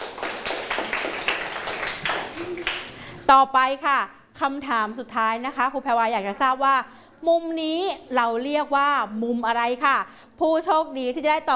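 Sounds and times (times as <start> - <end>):
children clapping: 0.0 - 3.2
speech: 3.3 - 11.5.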